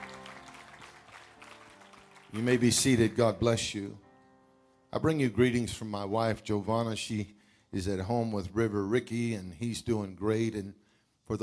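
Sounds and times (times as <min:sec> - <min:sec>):
audience clapping hands: 0:00.0 - 0:03.6
speech: 0:02.3 - 0:04.0, 0:04.9 - 0:11.4.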